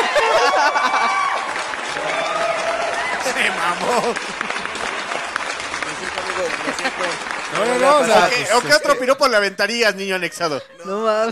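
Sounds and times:
laughter: 0.0s - 1.7s, 3.0s - 9.4s
applause: 0.0s - 9.6s
speech: 3.8s - 4.6s, 6.4s - 11.3s.

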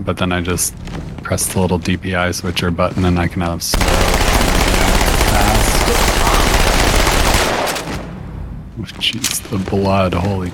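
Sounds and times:
speech: 0.0s - 4.3s, 8.8s - 10.5s
automatic gunfire in a first-person shooter video game: 3.8s - 8.1s.

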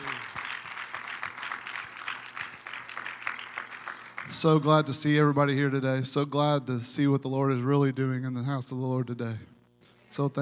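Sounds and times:
audience clapping: 0.0s - 4.8s
speech: 4.3s - 9.5s, 10.2s - 10.3s.

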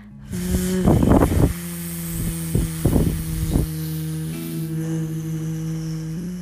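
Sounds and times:
short breathy bursts: 0.0s - 6.4s
steady low humming exhale imitating a buzzing bee: 0.0s - 6.4s.

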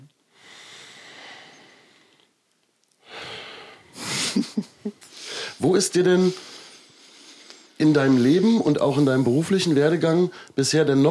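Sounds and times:
deep inhalation: 0.3s - 2.3s, 3.0s - 5.6s, 6.2s - 7.8s
laughter: 4.0s - 5.0s
speech: 4.4s - 6.5s, 7.8s - 11.1s.

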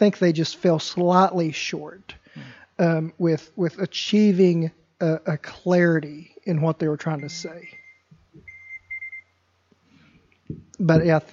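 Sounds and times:
speech: 0.0s - 7.8s, 10.5s - 11.3s
phone warning alarm beeping: 7.2s - 9.4s.

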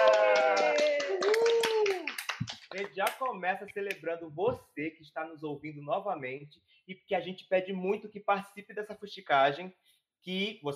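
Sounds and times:
hand clapping: 0.0s - 4.0s
speech: 3.0s - 10.7s.

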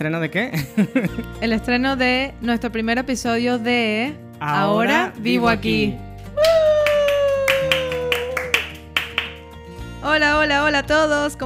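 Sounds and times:
speech: 0.0s - 6.6s, 10.1s - 11.4s
laughter: 0.6s - 1.3s, 7.4s - 8.5s
hand clapping: 6.4s - 9.7s.

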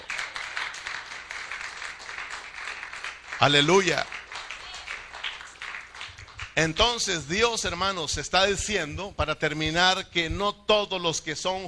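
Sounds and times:
audience applause: 0.0s - 7.0s
speech: 3.4s - 4.1s, 6.6s - 11.6s.

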